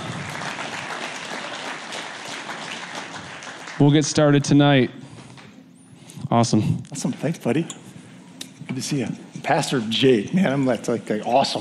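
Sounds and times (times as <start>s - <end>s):
audience applause: 0.0s - 4.2s
speech: 3.8s - 5.0s, 6.3s - 7.8s, 8.8s - 11.5s.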